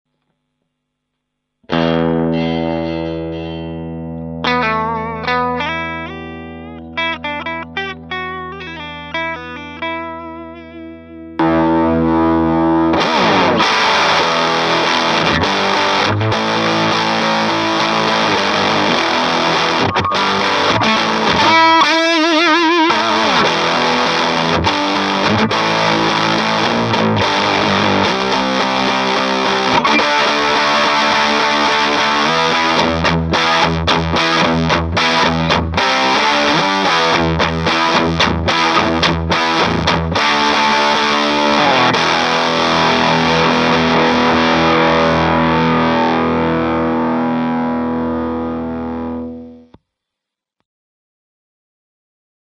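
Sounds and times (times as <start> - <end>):
fuzz box guitar: 1.6 - 49.8.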